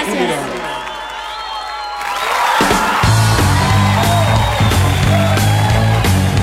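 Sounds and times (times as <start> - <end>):
crowd applauding and cheering: 0.0 - 6.4
music with pulsing bass beat: 3.0 - 6.4.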